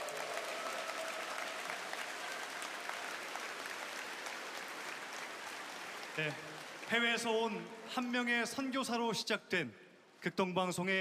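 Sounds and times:
audience applause: 0:00.0 - 0:08.4
speech: 0:06.2 - 0:10.9.

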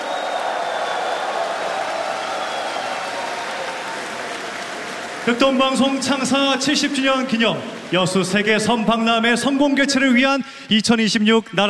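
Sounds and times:
audience applause: 0:00.0 - 0:08.6
speech: 0:05.3 - 0:11.6.

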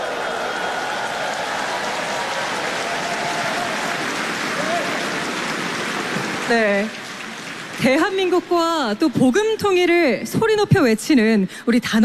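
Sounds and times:
audience applause: 0:00.0 - 0:09.1
speech: 0:06.5 - 0:07.0, 0:07.8 - 0:12.0.

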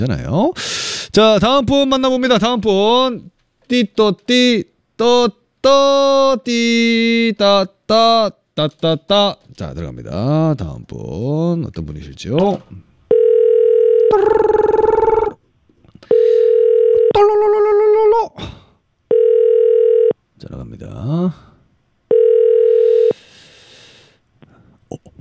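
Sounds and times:
speech: 0:00.0 - 0:12.9, 0:14.1 - 0:15.3, 0:20.4 - 0:21.5
telephone ringback tone: 0:13.1 - 0:15.4, 0:16.1 - 0:17.2, 0:19.1 - 0:20.1, 0:22.1 - 0:23.2.

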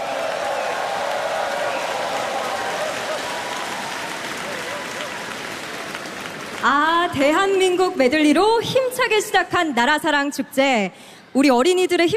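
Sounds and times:
audience applause: 0:00.0 - 0:07.2
speech: 0:06.6 - 0:12.1.

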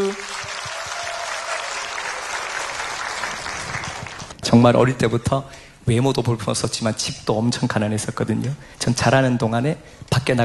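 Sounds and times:
speech: 0:00.0 - 0:00.4, 0:04.6 - 0:10.4
audience applause: 0:00.0 - 0:04.4.

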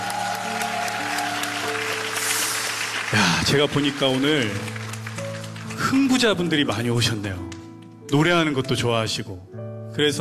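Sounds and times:
audience applause: 0:00.0 - 0:06.6
speech: 0:03.1 - 0:04.8, 0:05.9 - 0:07.5, 0:08.1 - 0:10.1.

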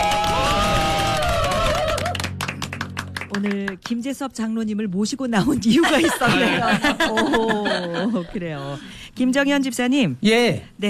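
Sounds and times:
applause for the pastor: 0:00.0 - 0:03.8
speech: 0:03.4 - 0:10.8
laughter: 0:05.7 - 0:08.8.

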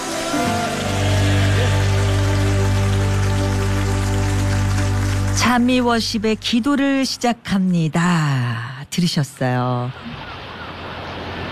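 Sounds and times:
audience applause: 0:00.0 - 0:06.3
speech: 0:05.5 - 0:10.3.

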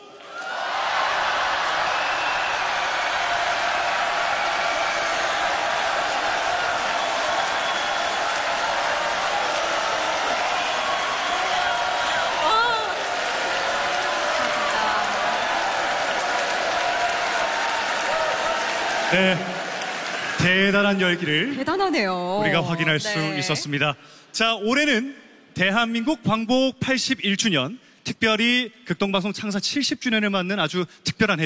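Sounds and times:
audience cheering and applause: 0:00.0 - 0:23.8
speech: 0:20.6 - 0:31.4.

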